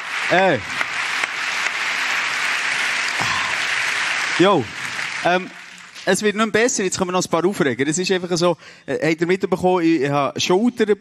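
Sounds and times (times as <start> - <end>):
applause: 0.0 - 6.8
speech: 0.3 - 0.8, 4.4 - 10.9.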